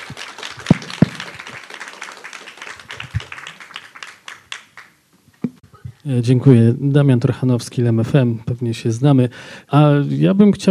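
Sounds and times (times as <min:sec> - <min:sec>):
audience applause: 0:00.0 - 0:05.0
speech: 0:06.0 - 0:10.6.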